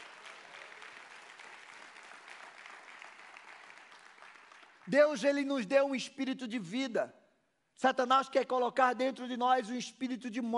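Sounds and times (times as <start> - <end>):
audience applause: 0.0 - 4.9
speech: 4.9 - 7.2, 7.8 - 10.5.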